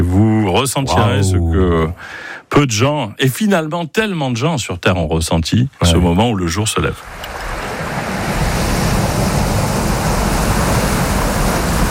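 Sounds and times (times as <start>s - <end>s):
speech: 0.1s - 7.6s
ocean waves on a beach: 7.0s - 11.9s.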